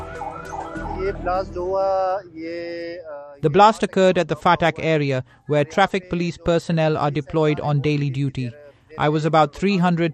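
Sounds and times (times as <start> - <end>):
emergency vehicle sirens wailing: 0.0 - 1.7
speech: 1.0 - 10.1.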